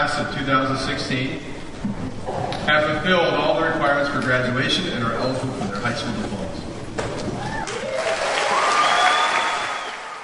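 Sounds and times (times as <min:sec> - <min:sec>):
speech: 0:00.0 - 0:06.7
audience applause and cheers at graduation: 0:07.2 - 0:10.2.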